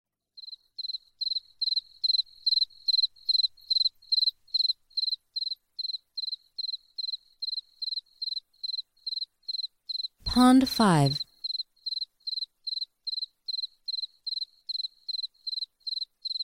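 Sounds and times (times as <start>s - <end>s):
cricket chirping: 0.4s - 10.2s, 11.4s - 16.4s
speech: 10.4s - 11.2s.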